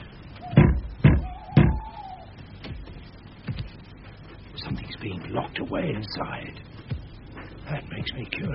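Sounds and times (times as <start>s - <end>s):
knocking on a door: 0.5s - 1.9s
speech: 5.0s - 6.6s, 7.7s - 8.5s.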